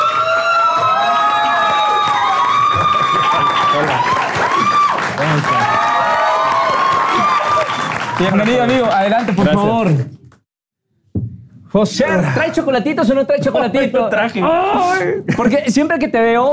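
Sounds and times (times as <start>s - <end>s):
applause: 0.0s - 10.1s
speech: 8.2s - 10.2s, 11.7s - 16.5s.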